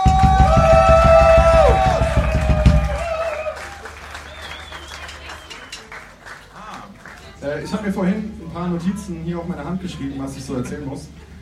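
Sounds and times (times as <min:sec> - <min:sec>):
audience applause: 0:00.0 - 0:07.9
speech: 0:08.7 - 0:11.3.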